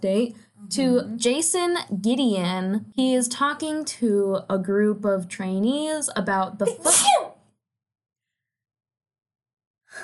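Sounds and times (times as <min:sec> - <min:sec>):
speech: 0:00.0 - 0:07.4
person sneezing: 0:06.7 - 0:07.4.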